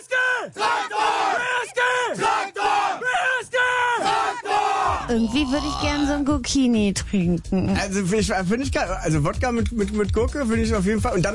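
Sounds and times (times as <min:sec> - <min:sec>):
football players shouting team battle cry: 0:00.0 - 0:05.2
speech: 0:05.1 - 0:11.3.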